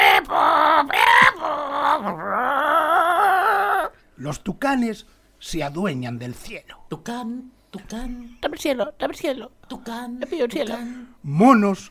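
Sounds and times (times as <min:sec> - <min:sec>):
parrots chattering in the jungle: 0:00.0 - 0:04.0
speech: 0:02.0 - 0:02.3, 0:04.2 - 0:11.9.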